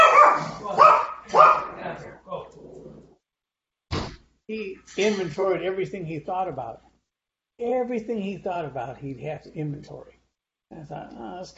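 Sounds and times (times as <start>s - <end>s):
dog barking: 0.0s - 1.8s
speech: 4.5s - 6.9s, 7.6s - 11.5s.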